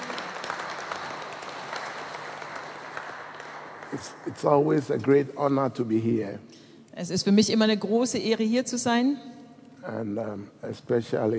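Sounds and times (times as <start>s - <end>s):
audience applauding: 0.0s - 4.9s
speech: 3.9s - 11.3s.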